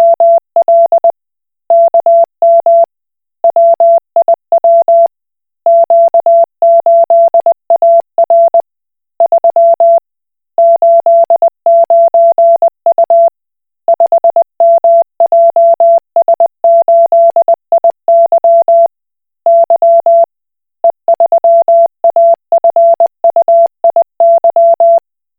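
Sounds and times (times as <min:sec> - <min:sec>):
Koch Morse code beeps: 0:00.0 - 0:01.1, 0:01.7 - 0:02.9, 0:03.5 - 0:05.1, 0:05.7 - 0:08.6, 0:10.6 - 0:13.3, 0:13.9 - 0:18.9, 0:19.5 - 0:25.0.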